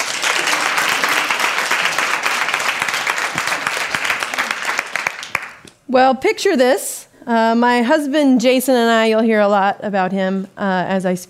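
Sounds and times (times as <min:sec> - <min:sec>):
audience applause welcoming a speaker: 0:00.0 - 0:05.7
speech: 0:05.9 - 0:11.2.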